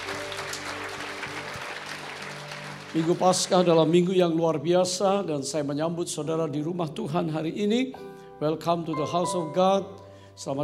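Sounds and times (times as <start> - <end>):
audience applauding: 0.0 - 4.6
speech: 2.9 - 10.6.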